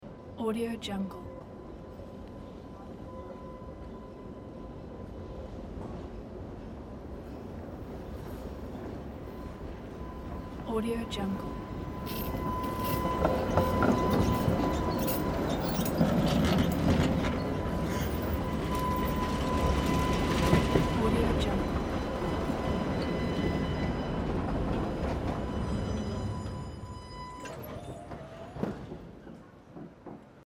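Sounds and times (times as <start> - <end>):
tram arriving: 0.0 - 30.4.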